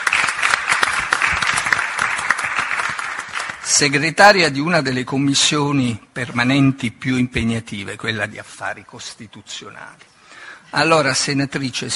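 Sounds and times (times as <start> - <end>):
crowd clapping: 0.0 - 4.0
speech: 3.7 - 10.1, 10.7 - 11.9.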